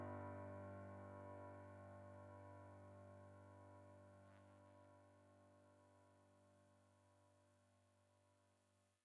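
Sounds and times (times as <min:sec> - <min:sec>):
Steinmayer DP-360 digital piano: 0:00.0 - 0:05.8.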